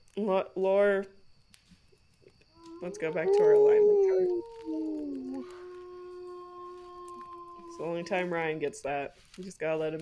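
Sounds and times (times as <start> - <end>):
speech: 0.2 - 1.2, 2.8 - 5.6, 7.8 - 10.0
person howling imitating a wolf or dog: 2.6 - 8.1.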